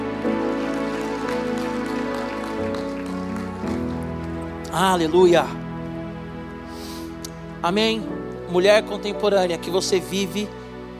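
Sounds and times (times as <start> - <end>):
audience applauding: 0.0 - 5.3
speech: 4.8 - 5.6, 7.6 - 10.6.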